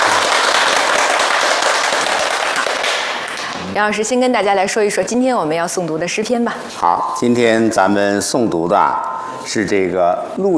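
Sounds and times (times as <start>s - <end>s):
audience applause: 0.0s - 3.6s
speech: 3.8s - 10.5s.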